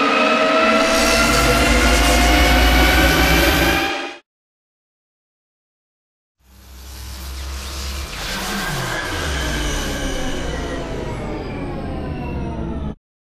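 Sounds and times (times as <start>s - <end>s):
pulse build: 0.1s - 4.2s, 6.5s - 13.0s.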